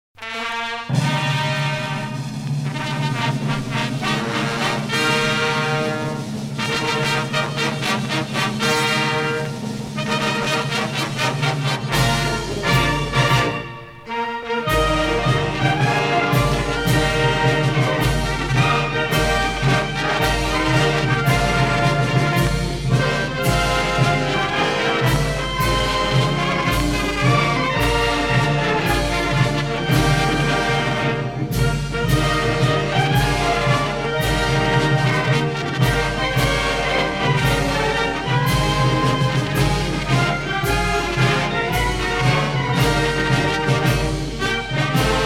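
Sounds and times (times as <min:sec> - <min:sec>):
instrumental anthem without vocals: 0:00.2 - 0:45.2.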